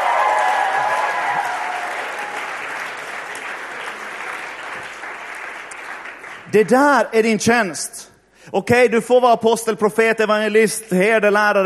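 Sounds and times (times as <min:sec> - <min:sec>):
audience applause: 0:00.0 - 0:06.5
speech: 0:06.5 - 0:11.6.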